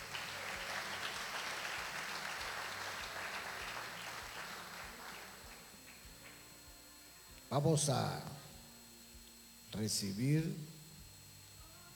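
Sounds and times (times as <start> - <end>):
audience applause for the king: 0.0 - 6.5
speech: 7.5 - 8.3, 9.8 - 10.7.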